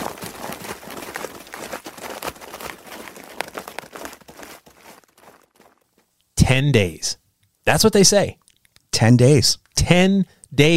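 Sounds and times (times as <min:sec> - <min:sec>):
thudding steps of a wounded animal running off: 0:00.0 - 0:06.1
undergrowth crunching under a running wounded animal: 0:00.0 - 0:06.2
speech: 0:06.5 - 0:10.7.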